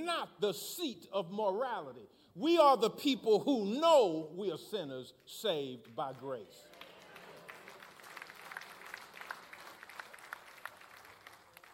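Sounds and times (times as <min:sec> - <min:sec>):
speech: 0:00.2 - 0:06.7
sparse applause: 0:06.5 - 0:11.7.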